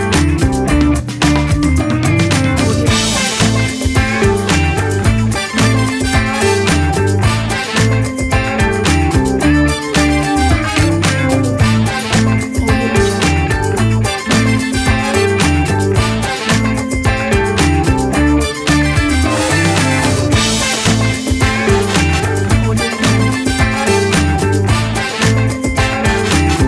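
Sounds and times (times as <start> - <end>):
funky groove background music: 0.0 - 26.6.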